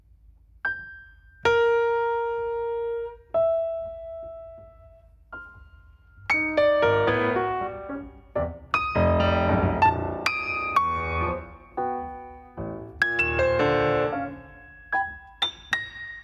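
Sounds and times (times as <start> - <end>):
piano piece: 0.6 - 16.2.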